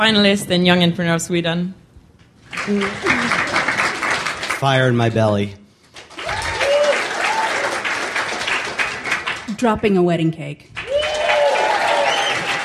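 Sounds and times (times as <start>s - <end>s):
speech: 0.0s - 1.8s, 2.6s - 3.2s, 4.6s - 5.6s, 9.6s - 10.7s
audience clapping: 2.4s - 10.1s, 10.7s - 12.6s.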